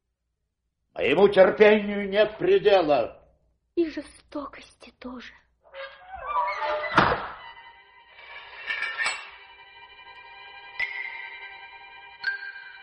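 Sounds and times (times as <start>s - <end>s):
speech: 1.0s - 3.2s, 3.8s - 5.4s
wrought-iron door slamming: 5.8s - 7.5s.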